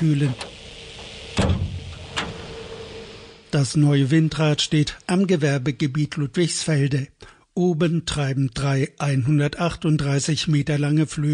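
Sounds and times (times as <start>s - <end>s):
speech: 0.0s - 0.5s, 3.5s - 11.3s
dark green sheet-metal door at wind turbine tower base opening: 1.3s - 2.4s.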